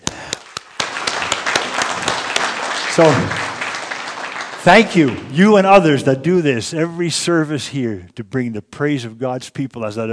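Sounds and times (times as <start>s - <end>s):
church congregation applauding to praise God during a service: 0.0s - 6.2s
speech: 3.0s - 3.4s, 4.6s - 10.1s.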